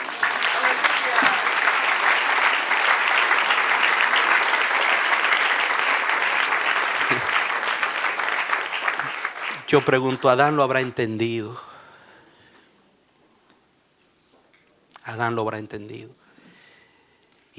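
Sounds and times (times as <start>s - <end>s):
audience applause: 0.0s - 11.0s
speech: 9.7s - 11.7s, 15.2s - 16.2s.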